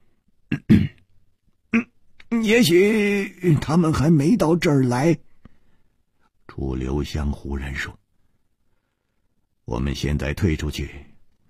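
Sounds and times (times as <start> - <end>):
speech: 0.5 - 0.9, 2.5 - 5.3, 6.6 - 8.0, 9.7 - 11.1
man coughing and clearing his throat: 0.5 - 1.0.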